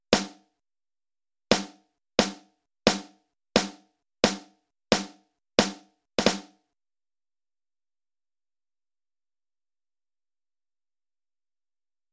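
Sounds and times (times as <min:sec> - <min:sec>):
drums: 0:00.1 - 0:00.5, 0:01.5 - 0:06.6.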